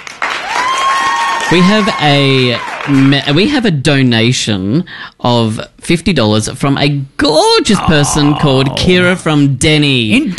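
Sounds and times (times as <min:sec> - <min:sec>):
applause sound effect from a button: 0:00.0 - 0:03.2
speech: 0:01.5 - 0:10.3.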